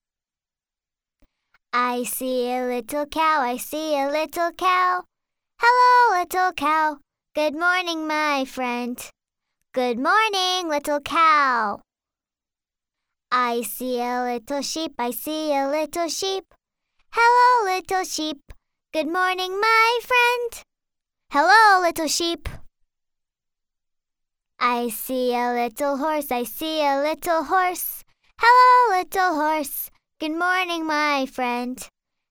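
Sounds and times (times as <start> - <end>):
foreign woman singing a children's song in American English: 1.8 - 9.1, 9.8 - 11.8, 13.3 - 16.4, 17.2 - 20.6, 21.3 - 22.6, 24.6 - 31.9.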